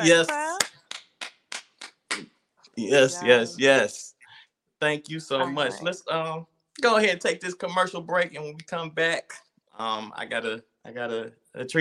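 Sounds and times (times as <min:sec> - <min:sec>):
speech: 0:00.0 - 0:00.4, 0:02.8 - 0:04.0, 0:04.8 - 0:11.7
hand claps: 0:00.0 - 0:02.4
brief voiced sound: 0:02.8 - 0:04.1, 0:04.9 - 0:07.1.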